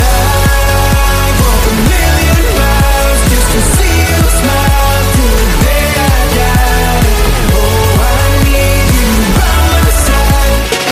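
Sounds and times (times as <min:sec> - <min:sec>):
hot electro ringtone: 0:00.0 - 0:10.9.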